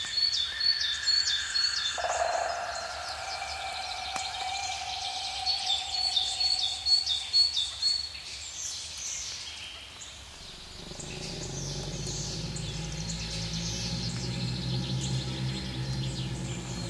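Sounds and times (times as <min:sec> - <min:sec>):
wildlife ambience bed: 0:00.4 - 0:08.2, 0:10.0 - 0:16.8.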